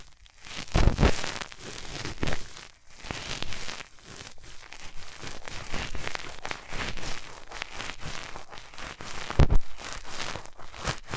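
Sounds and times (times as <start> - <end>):
hands rubbing over the ears: 1.1 - 11.1.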